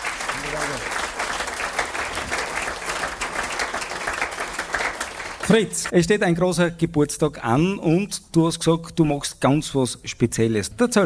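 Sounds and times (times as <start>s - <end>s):
audience applause: 0.0s - 5.9s
speech: 5.5s - 11.0s.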